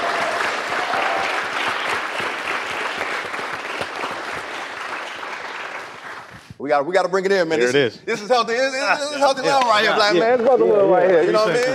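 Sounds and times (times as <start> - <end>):
crowd applause: 0.0 - 6.3
speech: 6.6 - 11.7.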